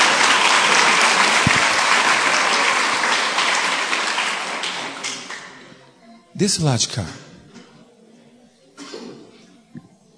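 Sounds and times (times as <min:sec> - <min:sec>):
audience applause: 0:00.0 - 0:05.6
speech: 0:06.4 - 0:07.3.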